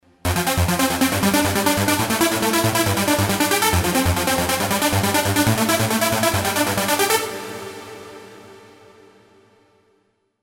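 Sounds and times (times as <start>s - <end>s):
Roland SH-201 supersaw synth sequence: 0.2s - 8.0s.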